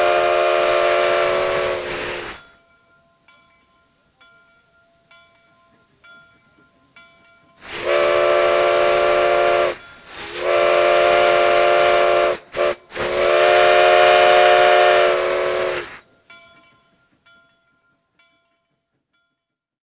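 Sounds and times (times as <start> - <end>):
train whistle ringtone for a mobile phone: 0.0 - 2.4, 7.6 - 16.0.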